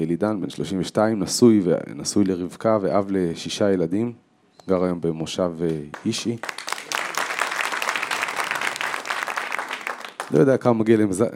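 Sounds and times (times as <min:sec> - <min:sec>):
speech: 0:00.0 - 0:06.6, 0:10.3 - 0:11.3
audience applause: 0:06.0 - 0:10.4.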